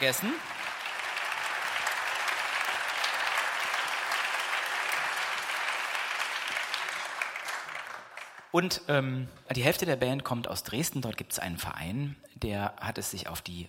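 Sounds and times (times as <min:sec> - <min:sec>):
speech: 0:00.0 - 0:00.6, 0:08.5 - 0:13.6
audience applauding the lighting crew at an evening band concert: 0:00.0 - 0:08.5.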